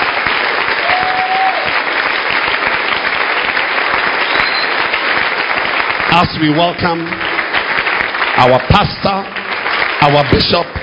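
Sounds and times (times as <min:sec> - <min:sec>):
audience hand clapping: 0:00.0 - 0:10.8
speech: 0:06.2 - 0:07.3, 0:08.4 - 0:09.4, 0:10.0 - 0:10.8.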